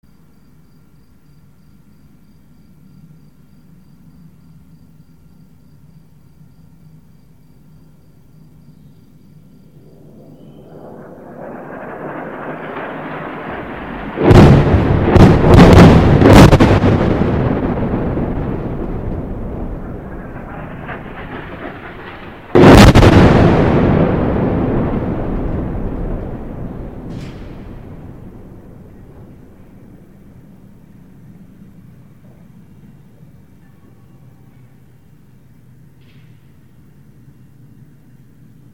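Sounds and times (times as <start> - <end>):
explosions in Tripoli: 9.7 - 32.3.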